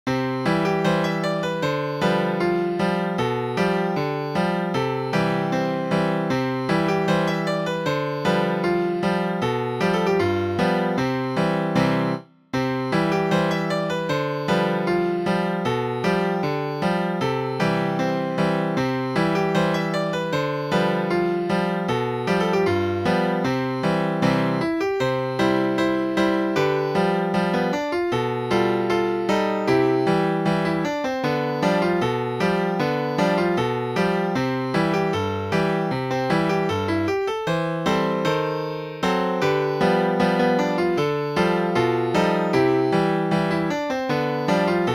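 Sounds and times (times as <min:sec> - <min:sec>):
Swedish polka on piano: 0:00.0 - 0:44.9.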